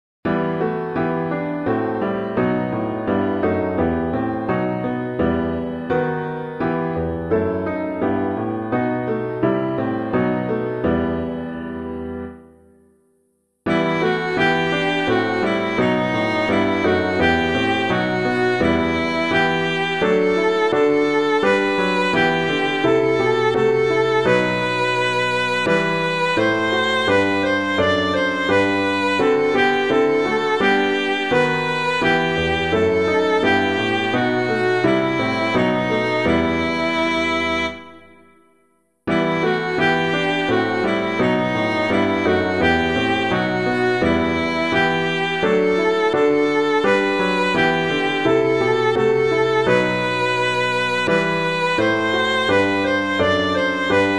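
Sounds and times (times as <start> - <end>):
piano: 0.2 - 54.1.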